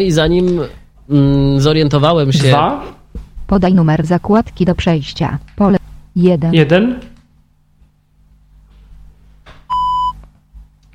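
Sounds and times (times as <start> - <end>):
speech: 0.0 - 7.1
Penfriend electronic reading pen start-up beep: 9.7 - 10.2.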